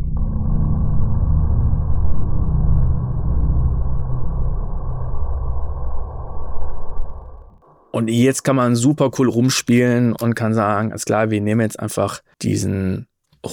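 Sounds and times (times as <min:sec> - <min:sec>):
deep rumbling synthesizer sub-bass: 0:00.0 - 0:08.0
speech: 0:08.0 - 0:13.5.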